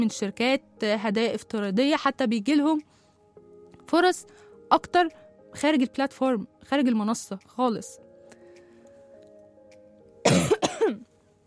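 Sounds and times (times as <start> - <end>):
speech: 0.0 - 3.0, 3.9 - 8.0
person coughing: 10.2 - 11.1.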